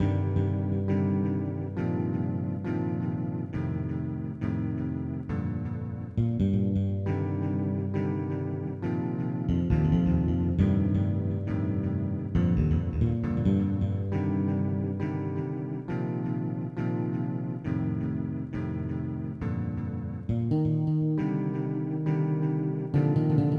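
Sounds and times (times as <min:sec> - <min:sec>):
listless guitar: 0:00.0 - 0:23.5.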